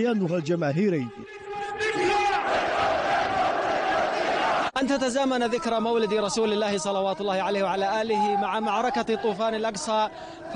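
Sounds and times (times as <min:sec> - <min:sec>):
speech: 0:00.0 - 0:01.4, 0:04.8 - 0:10.5
crowd chanting slogans: 0:01.6 - 0:04.8.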